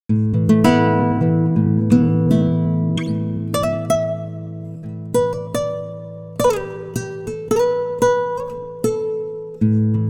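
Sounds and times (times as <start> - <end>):
time-stretched guitar: 0.1 - 10.0.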